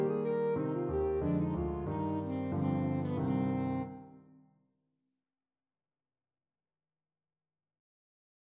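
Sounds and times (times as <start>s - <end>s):
alto saxophone melody: 0.0s - 4.3s.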